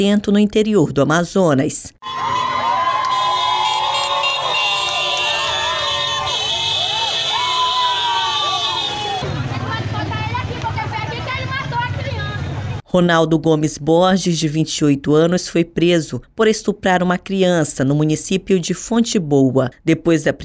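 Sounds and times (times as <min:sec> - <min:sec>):
speech: 0:00.0 - 0:02.3, 0:12.9 - 0:20.4
motorcycle horns blaring: 0:02.0 - 0:10.5
loud crowd shouting and yelling: 0:02.0 - 0:12.0.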